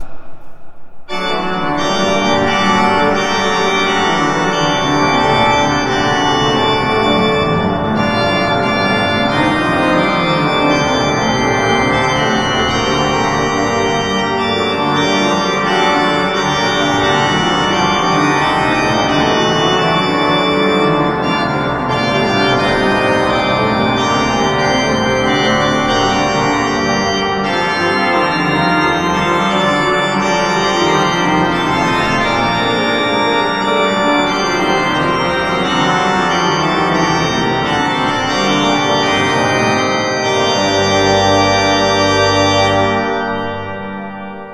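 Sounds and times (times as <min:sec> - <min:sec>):
pipe organ: 0:00.0 - 0:44.5.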